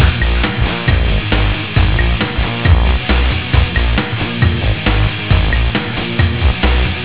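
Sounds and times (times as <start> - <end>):
music loop: 0.0 - 7.0.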